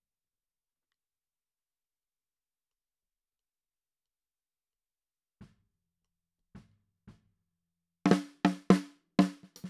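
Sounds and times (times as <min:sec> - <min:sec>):
snare drum top hit: 0:08.1 - 0:09.6.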